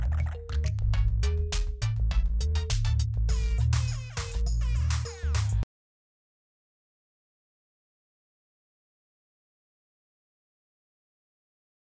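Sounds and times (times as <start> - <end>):
Volca synthesizers jamming recorded from direct individual outputs: 0.0 - 5.6.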